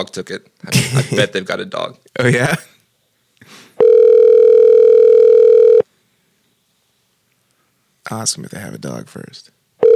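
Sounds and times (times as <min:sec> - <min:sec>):
speech: 0:00.0 - 0:02.7, 0:08.1 - 0:09.6
telephone dial tone with call being placed: 0:03.8 - 0:05.8.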